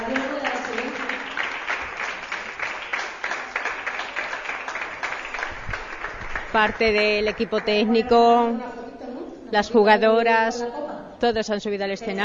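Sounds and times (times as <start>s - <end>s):
audience applause: 0.0s - 7.9s
speech: 6.6s - 8.8s, 9.5s - 12.2s.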